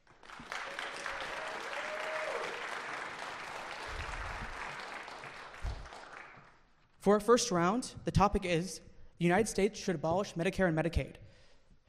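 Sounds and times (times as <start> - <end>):
audience applause at a Yale debate event: 0.0 - 6.6
speech: 7.0 - 11.2.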